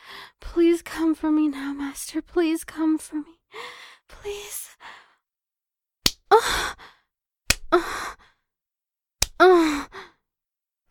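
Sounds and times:
speech: 0.6s - 5.0s
hand smacking bare buttocks: 7.5s - 7.7s, 9.2s - 9.4s.

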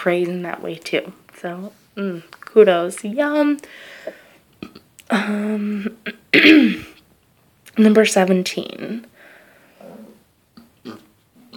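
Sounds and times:
speech: 0.0s - 4.2s, 5.1s - 6.9s, 7.8s - 9.1s
person burping: 4.6s - 7.0s, 10.8s - 11.5s.

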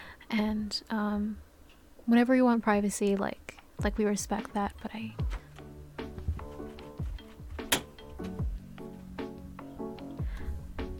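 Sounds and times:
speech: 0.3s - 1.5s, 2.1s - 5.3s
doorknob jiggled: 7.0s - 8.4s
door forced open in a shared bedroom: 7.6s - 8.1s.

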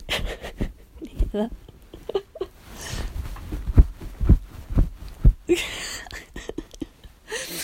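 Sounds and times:
bed sheets rustling: 0.0s - 5.7s
speech: 1.3s - 2.2s
thumps from bouncing on a mattress: 3.0s - 5.5s.

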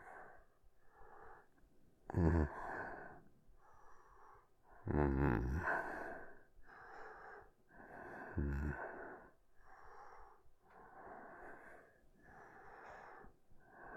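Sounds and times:
furtive noises: 2.1s - 3.8s, 4.7s - 7.0s, 8.1s - 9.2s.

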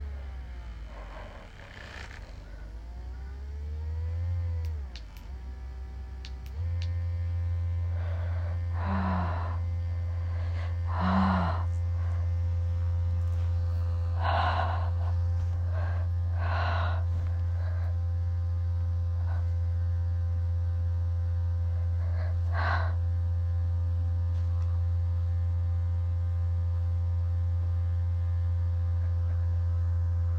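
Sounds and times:
white noise: 0.0s - 30.3s.

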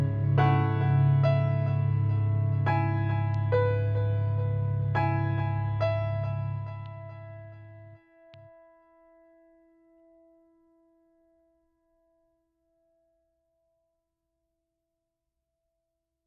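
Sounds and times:
instrumental music: 0.0s - 9.3s.

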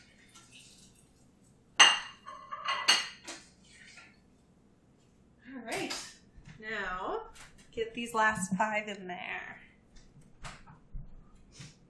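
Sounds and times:
utensils clinking against cookware lifting fried food out of oil: 1.8s - 3.4s
speech: 7.9s - 9.5s.

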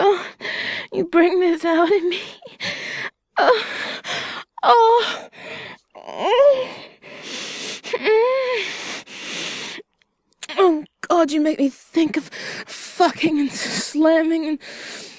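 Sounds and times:
gasping: 0.0s - 1.0s, 2.1s - 9.9s
speech: 0.9s - 2.7s, 3.4s - 4.0s, 4.6s - 6.8s, 10.6s - 15.1s
breathy vocal moans and groans: 2.1s - 9.8s.

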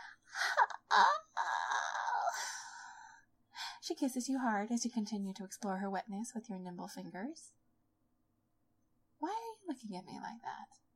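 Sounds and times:
woman's voice imitating a moan of pleasure: 0.4s - 3.2s
speech: 1.0s - 1.2s, 3.9s - 7.6s, 9.7s - 10.9s.

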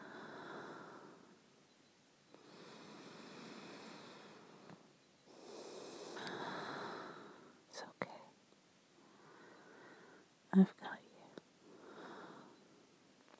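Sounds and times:
slow soft breathing: 0.0s - 1.4s, 2.3s - 7.6s, 9.0s - 10.4s, 11.6s - 12.8s
speech: 10.6s - 10.9s.

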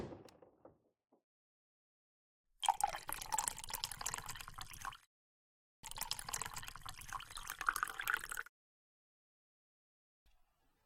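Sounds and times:
water pouring into a glass: 2.6s - 5.1s, 5.8s - 8.5s.

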